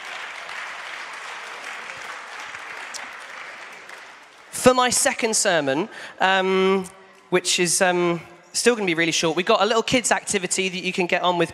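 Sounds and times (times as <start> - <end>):
audience applause: 0.0 - 4.6
speech: 4.6 - 11.5.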